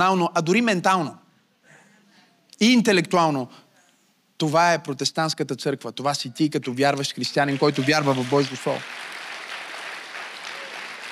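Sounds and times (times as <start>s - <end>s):
speech: 0.0s - 1.2s, 2.6s - 3.6s, 4.4s - 9.1s
crowd applauding: 7.3s - 11.0s.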